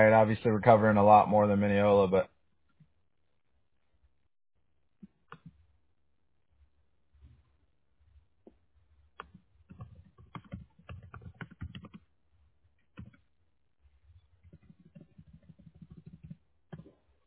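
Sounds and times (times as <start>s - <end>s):
speech: 0.0s - 2.3s
typing on a computer keyboard: 9.2s - 12.1s, 12.8s - 13.3s, 14.4s - 17.0s.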